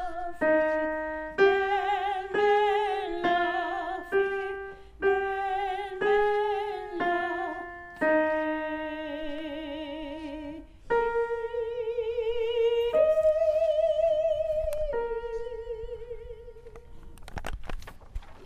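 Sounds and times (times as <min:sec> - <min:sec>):
alto melody: 0:00.0 - 0:17.1.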